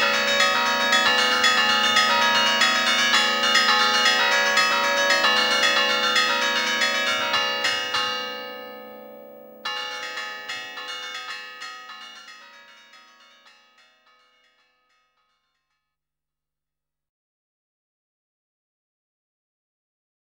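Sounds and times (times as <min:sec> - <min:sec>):
bells ringing: 0:00.0 - 0:15.3.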